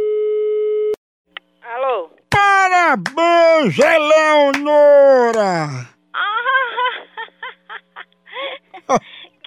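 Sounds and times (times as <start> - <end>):
steady telephone tone: 0.0 - 1.0
speech: 2.9 - 5.9, 8.9 - 9.1
laughter: 5.3 - 9.1.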